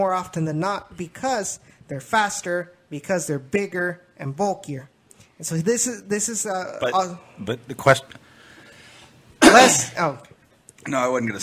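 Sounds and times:
speech: 0.0s - 8.2s, 9.5s - 11.4s
person clearing throat to shift phlegm: 9.4s - 10.0s.

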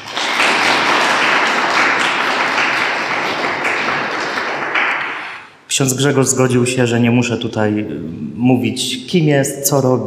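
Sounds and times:
audience applause: 0.0s - 5.4s
speech: 5.8s - 10.0s.

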